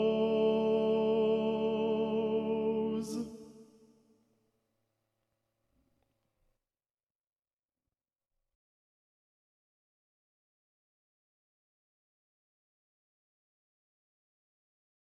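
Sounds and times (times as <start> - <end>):
alto voice singing: 0.0 - 3.8.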